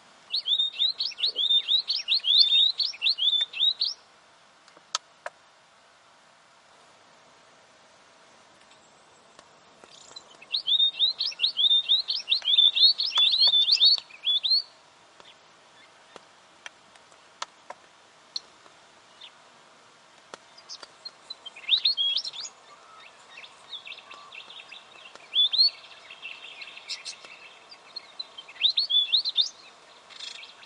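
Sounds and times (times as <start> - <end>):
weebill song: 0.3 - 4.0, 9.1 - 16.2, 20.4 - 30.6
chorus of other small birds: 0.3 - 4.1, 8.6 - 19.5, 20.2 - 30.6.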